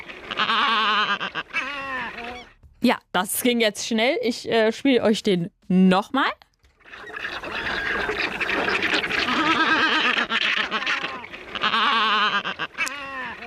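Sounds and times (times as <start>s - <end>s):
bird call that sounds like laughing: 0.3s - 2.5s, 6.9s - 13.4s
speech: 2.8s - 6.4s.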